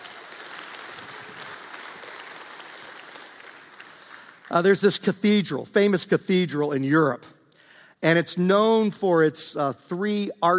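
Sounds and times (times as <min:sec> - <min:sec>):
roomful of people clapping: 0:00.0 - 0:05.1
speech: 0:04.5 - 0:07.4, 0:08.0 - 0:10.5.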